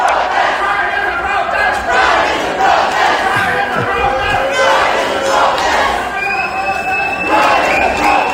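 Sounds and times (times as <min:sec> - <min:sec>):
small street pride march crowd chanting and cheering on the seafront at Ostend: 0:00.0 - 0:08.3
laughter: 0:02.4 - 0:06.2
whistles: 0:06.0 - 0:08.3.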